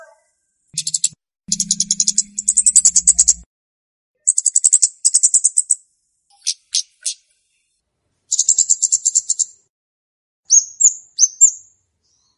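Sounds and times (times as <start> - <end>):
flowerpecker chirps used as a lure for wild birds: 0.8 - 3.4, 4.2 - 7.2, 8.3 - 9.6, 10.5 - 11.7.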